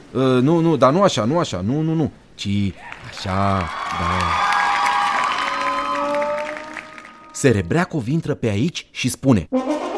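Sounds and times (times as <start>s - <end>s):
speech: 0.1s - 4.5s, 7.4s - 9.8s
theatre audience clapping and cheering during a play rehearsal: 2.7s - 7.8s.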